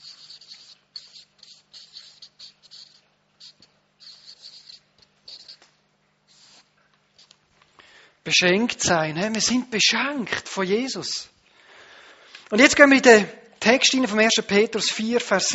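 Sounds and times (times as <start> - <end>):
writing by hand: 0.0 - 5.7, 6.3 - 7.3
speech: 8.3 - 11.3, 12.5 - 15.5.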